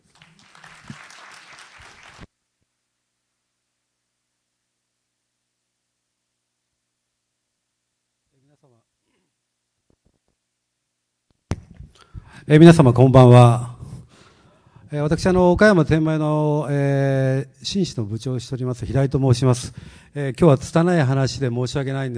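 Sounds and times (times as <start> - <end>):
audience applause: 0.0 - 2.3
speech: 12.5 - 13.7, 14.9 - 22.1.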